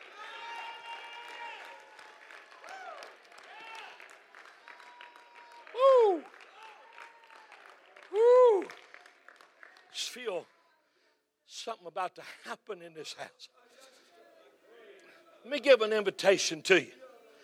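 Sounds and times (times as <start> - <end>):
audience clapping hands: 0.0 - 10.5
speech: 11.7 - 13.7, 15.4 - 17.0.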